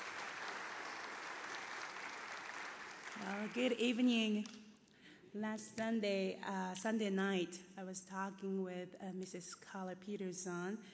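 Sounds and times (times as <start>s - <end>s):
church congregation applauding at an evening service: 0.0s - 4.0s
speech: 3.2s - 4.6s, 5.3s - 10.9s.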